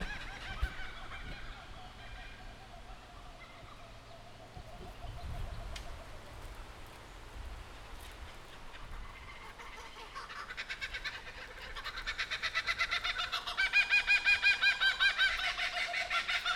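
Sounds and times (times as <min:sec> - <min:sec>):
several kookaburras laughing in the Victorian bush, Australia: 0:00.0 - 0:03.8, 0:08.8 - 0:16.5.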